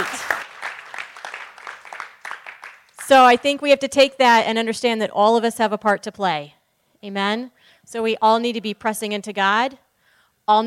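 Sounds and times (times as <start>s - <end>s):
audience applause: 0.0s - 3.1s
speech: 3.1s - 9.8s, 10.5s - 10.6s.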